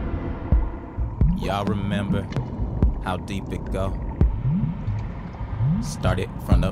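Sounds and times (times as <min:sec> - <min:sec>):
seismic air cannons firing underwater in a song: 0:00.5 - 0:06.7
speech: 0:01.5 - 0:04.1, 0:05.8 - 0:06.7.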